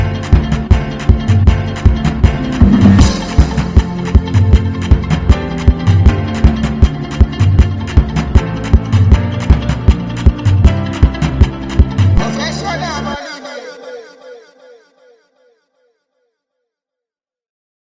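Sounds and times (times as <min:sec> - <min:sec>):
professional music beat: 0:00.0 - 0:13.1.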